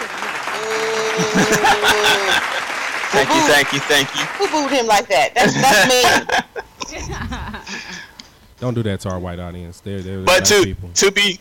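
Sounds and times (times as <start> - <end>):
laughter: 0.0 - 3.8, 5.4 - 8.0
audience applause: 0.0 - 5.9
speech: 1.4 - 7.8, 8.6 - 11.3.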